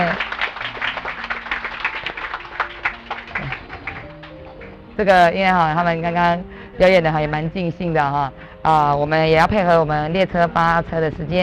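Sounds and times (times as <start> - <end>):
audience applause: 0.0 - 5.0
speech: 5.0 - 11.4.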